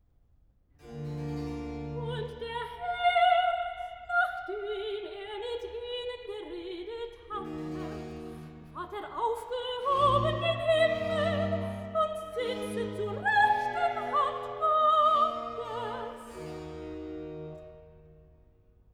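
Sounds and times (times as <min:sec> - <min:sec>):
soprano singing recitative: 0:01.9 - 0:16.6.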